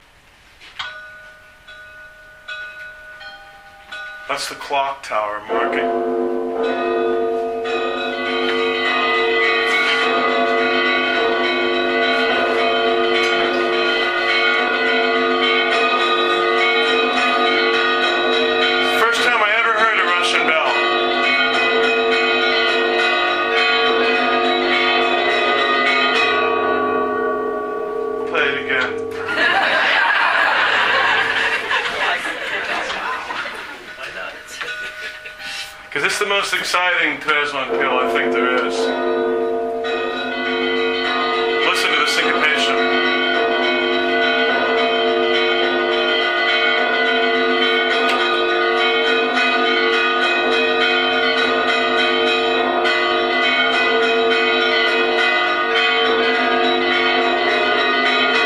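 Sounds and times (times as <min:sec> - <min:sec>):
bell tolling: 0:00.8 - 0:58.4
laughter: 0:29.2 - 0:35.7.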